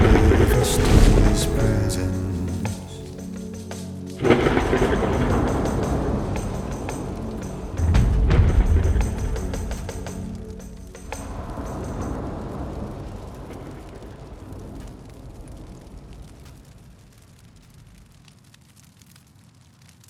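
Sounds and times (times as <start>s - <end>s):
ambience: 0.0s - 13.8s.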